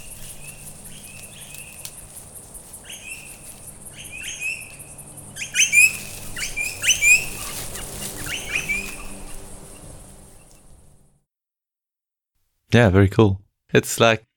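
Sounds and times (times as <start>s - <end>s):
bird calling outdoors: 0.0s - 10.9s
speech: 12.7s - 14.3s.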